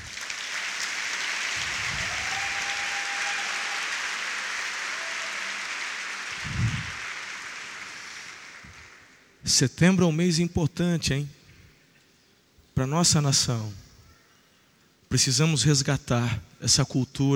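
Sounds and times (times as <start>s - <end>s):
large crowd applauding: 0.0s - 9.4s
speech: 9.5s - 11.4s, 12.8s - 13.8s, 15.1s - 17.3s.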